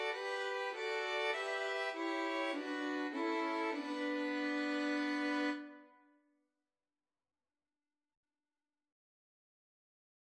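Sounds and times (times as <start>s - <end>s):
violin trio: 0.0s - 5.8s.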